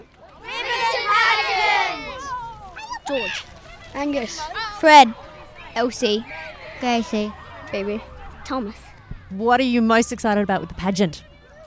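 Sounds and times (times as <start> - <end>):
lively outdoor street parade crowd voices: 0.0 - 11.6
children squealing and shouting: 0.4 - 9.3
speech: 3.1 - 11.3.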